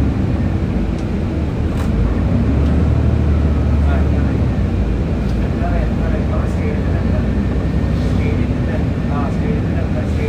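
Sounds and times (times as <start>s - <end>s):
bus engine rumble: 0.0s - 10.2s.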